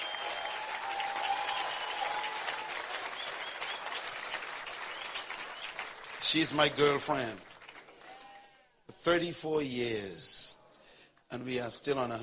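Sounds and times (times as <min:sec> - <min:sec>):
audience applause at a morning event: 0:00.0 - 0:08.2
speech: 0:06.3 - 0:07.5, 0:09.0 - 0:10.4, 0:11.3 - 0:12.2.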